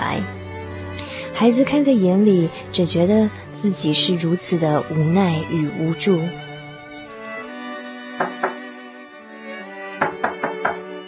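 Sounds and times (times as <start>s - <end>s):
speech: 1.4s - 6.4s
knocking on a door: 8.2s - 8.7s, 10.0s - 10.9s.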